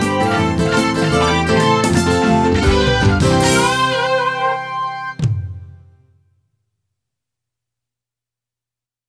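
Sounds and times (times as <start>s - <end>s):
instrumental music: 0.0s - 6.2s.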